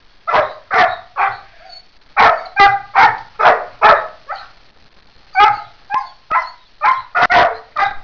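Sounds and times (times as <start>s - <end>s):
dog barking: 0.3s - 1.6s, 2.2s - 4.6s, 5.4s - 8.0s.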